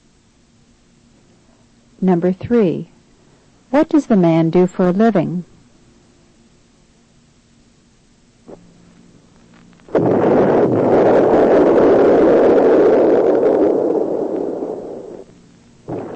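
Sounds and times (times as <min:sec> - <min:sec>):
speech: 0:02.0 - 0:02.9, 0:03.7 - 0:05.5
mine blast to break up ore: 0:09.9 - 0:16.1.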